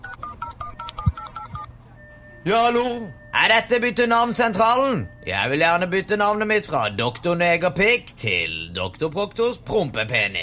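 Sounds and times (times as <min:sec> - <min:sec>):
telephone keypad tones: 0:00.0 - 0:02.5
speech: 0:02.4 - 0:10.4.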